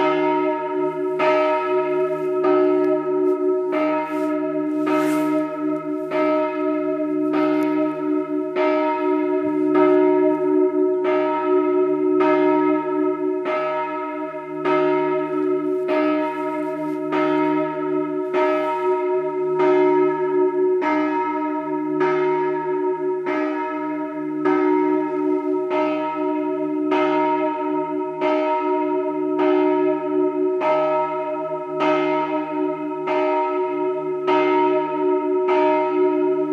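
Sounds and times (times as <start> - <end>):
bells: 0.0 - 36.5.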